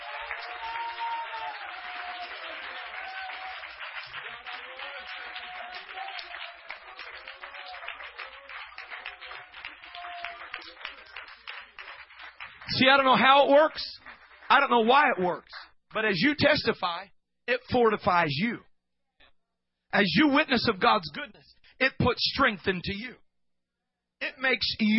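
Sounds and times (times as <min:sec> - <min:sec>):
audience clapping: 0:00.0 - 0:15.7
speech: 0:00.4 - 0:03.0, 0:12.8 - 0:18.7, 0:19.9 - 0:23.2, 0:24.2 - 0:24.9.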